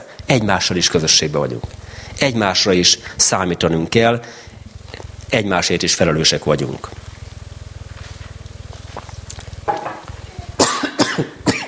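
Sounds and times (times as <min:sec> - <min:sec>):
speech: 0:00.3 - 0:04.5, 0:05.3 - 0:07.1
person with allergies coughing: 0:10.6 - 0:11.6.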